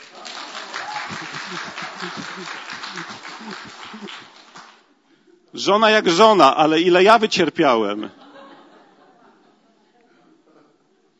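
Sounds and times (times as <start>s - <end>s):
audience applause: 0.0s - 4.9s
laughter: 0.2s - 4.4s, 8.1s - 11.0s
speech: 1.5s - 4.6s, 5.5s - 8.2s.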